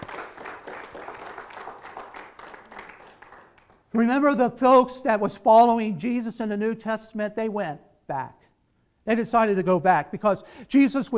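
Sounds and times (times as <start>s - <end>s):
audience applauding: 0.0s - 3.9s
speech: 3.9s - 8.4s, 9.0s - 11.1s.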